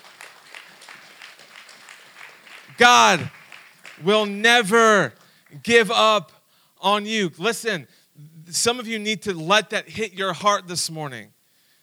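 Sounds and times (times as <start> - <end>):
audience clapping: 0.0 - 5.7
speech: 2.8 - 3.4, 4.0 - 11.4.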